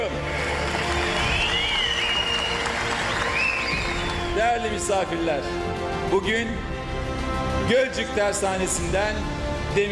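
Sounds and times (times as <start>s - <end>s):
audience applause: 0.2s - 4.9s
speech: 4.4s - 6.7s, 7.7s - 9.9s.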